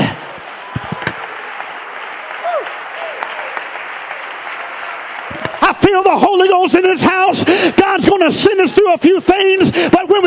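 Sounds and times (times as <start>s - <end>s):
crowd clapping: 0.0s - 9.4s
speech: 5.9s - 10.2s.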